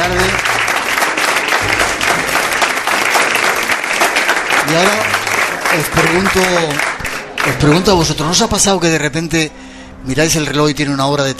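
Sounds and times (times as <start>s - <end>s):
audience applause: 0.0s - 8.4s
speech: 4.7s - 11.3s.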